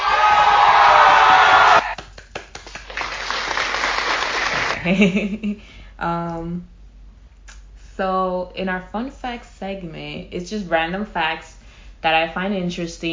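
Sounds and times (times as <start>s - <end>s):
applause sound effect: 0.0s - 4.8s
speech: 4.9s - 6.7s, 8.0s - 13.1s.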